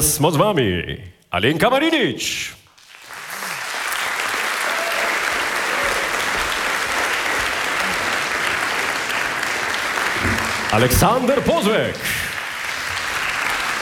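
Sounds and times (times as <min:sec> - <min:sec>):
speech: 0:00.0 - 0:02.6, 0:10.7 - 0:12.2
audience applause: 0:02.8 - 0:13.8.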